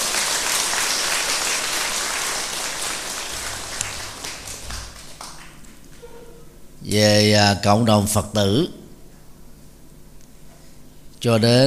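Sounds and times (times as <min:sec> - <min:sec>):
audience applause: 0:00.0 - 0:06.1
speech: 0:06.9 - 0:08.8, 0:11.2 - 0:11.6.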